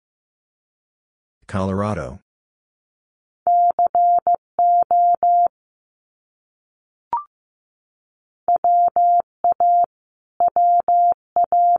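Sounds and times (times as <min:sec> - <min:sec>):
person speaking: 0:01.4 - 0:02.2
Morse code beeps at 15 wpm: 0:03.5 - 0:05.5, 0:08.5 - 0:11.7.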